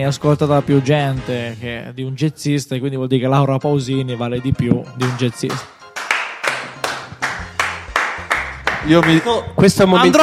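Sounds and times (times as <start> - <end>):
speech: 0.0 - 5.8, 8.8 - 10.2
applause: 6.0 - 9.4.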